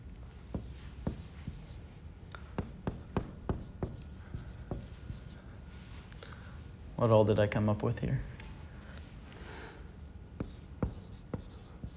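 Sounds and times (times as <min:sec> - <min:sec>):
handwriting scratching: 0:00.5 - 0:01.8, 0:02.6 - 0:05.4, 0:10.4 - 0:11.9
speech: 0:07.0 - 0:08.4.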